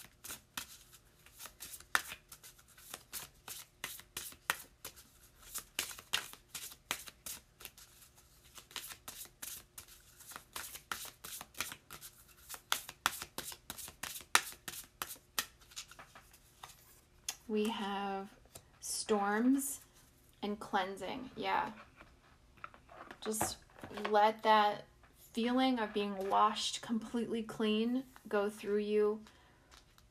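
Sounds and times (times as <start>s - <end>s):
Elemental Oracle cards being shuffled: 0.0s - 17.5s
speech: 17.5s - 18.4s, 19.1s - 19.8s, 20.5s - 21.8s, 23.2s - 29.3s.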